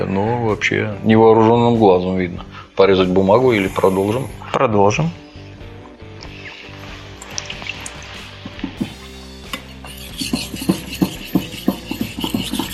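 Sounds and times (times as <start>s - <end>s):
speech: 0.0s - 5.2s
knife sharpening on fine-grit whetstone: 8.8s - 12.7s.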